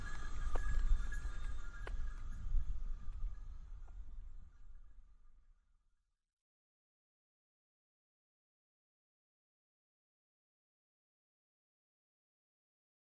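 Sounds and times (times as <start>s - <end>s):
sheep bells in Baradili Sardinia: 0.0s - 4.3s.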